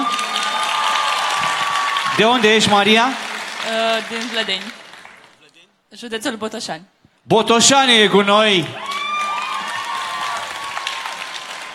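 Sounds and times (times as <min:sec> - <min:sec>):
audience applause: 0:00.0 - 0:05.4, 0:08.7 - 0:11.7
speech: 0:02.2 - 0:04.8, 0:05.9 - 0:08.9.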